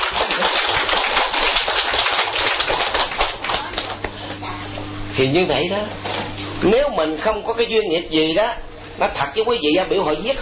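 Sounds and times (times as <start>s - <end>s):
crowd clapping: 0.0s - 4.1s
speech: 5.2s - 10.4s.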